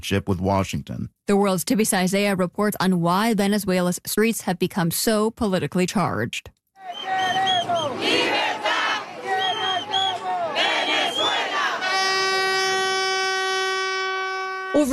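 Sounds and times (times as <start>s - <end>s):
speech: 0.0s - 7.1s, 14.8s - 14.9s
street protest crowd chanting and shouting: 6.8s - 12.7s
shrill whistle-like cries: 6.8s - 14.8s
long steady horn blast: 7.0s - 14.9s.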